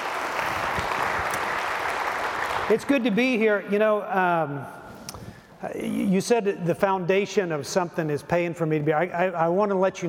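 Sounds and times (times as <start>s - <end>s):
church congregation applauding itself: 0.0s - 3.4s
speech: 2.7s - 4.8s, 5.6s - 10.0s.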